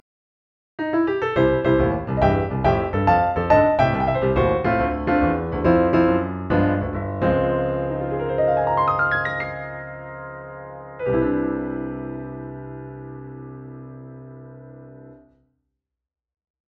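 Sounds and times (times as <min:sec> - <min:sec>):
jazz-style piano playing technique example: 0:00.8 - 0:15.3.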